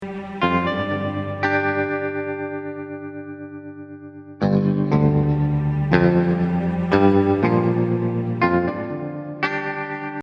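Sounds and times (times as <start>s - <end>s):
less powerful and energetic music: 0.0s - 10.2s.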